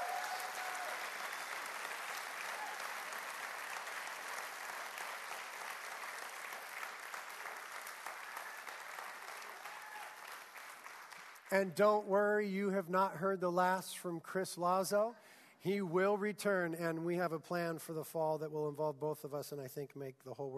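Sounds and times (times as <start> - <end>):
audience applause: 0.0 - 11.5
speech: 11.5 - 20.5.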